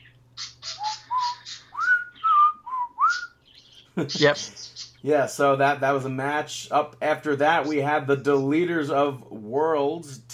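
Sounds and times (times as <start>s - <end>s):
birds chirping: 0.0s - 6.2s, 7.3s - 8.9s
speech: 4.0s - 10.3s.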